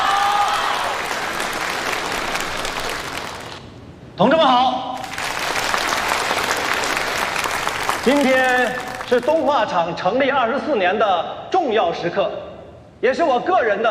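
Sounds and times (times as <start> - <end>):
audience applause: 0.0 - 3.6, 5.0 - 9.6
speech: 4.2 - 4.8, 8.0 - 13.8.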